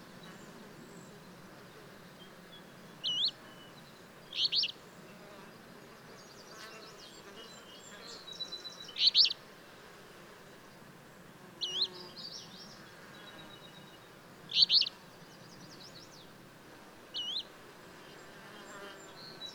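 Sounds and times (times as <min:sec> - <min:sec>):
bird song of brief high chirps: 0:02.2 - 0:05.2, 0:06.1 - 0:09.4, 0:11.6 - 0:16.3, 0:17.1 - 0:17.5.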